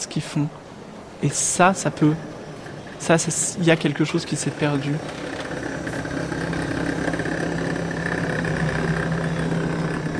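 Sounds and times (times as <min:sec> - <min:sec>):
rail-suspended book conveyor cars in the Bibliothèque nationale de France at Tolbiac, Paris: 0:00.0 - 0:10.1
speech: 0:00.1 - 0:00.6, 0:01.2 - 0:02.4, 0:03.0 - 0:05.4.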